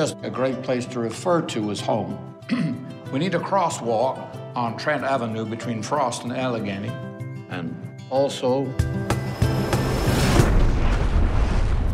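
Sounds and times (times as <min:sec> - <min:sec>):
speech: 0:00.0 - 0:09.3
UFO crash explosion: 0:09.6 - 0:11.9.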